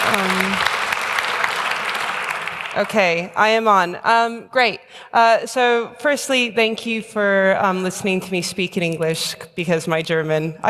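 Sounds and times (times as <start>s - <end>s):
audience applause at a talk: 0.0s - 3.0s
speech: 0.2s - 0.7s, 2.8s - 10.6s.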